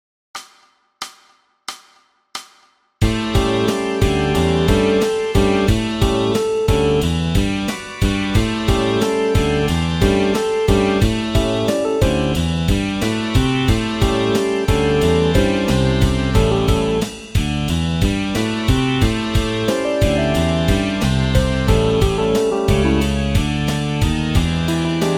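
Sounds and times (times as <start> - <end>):
bass: 3.0 - 25.1.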